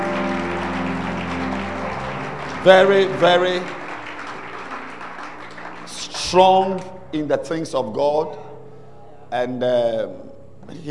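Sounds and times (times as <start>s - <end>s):
audience clapping hands: 0.0s - 6.9s
speech: 2.6s - 3.8s, 6.3s - 8.4s, 9.3s - 10.9s.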